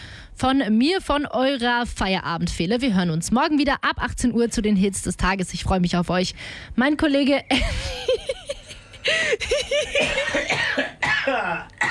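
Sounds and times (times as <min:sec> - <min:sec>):
speech: 0:00.4 - 0:08.2, 0:09.0 - 0:11.8
man coughing on purpose: 0:09.2 - 0:11.8.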